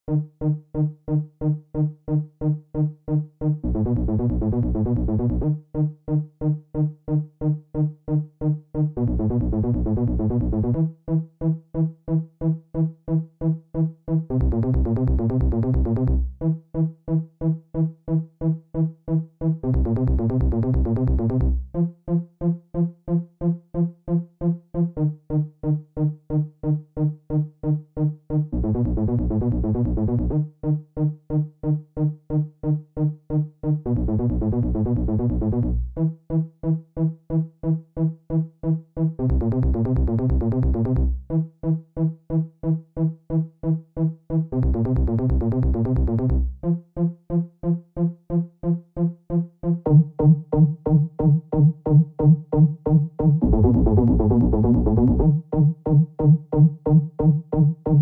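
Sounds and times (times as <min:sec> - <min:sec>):
90s bass arpeggio: 0:00.1 - 0:58.0.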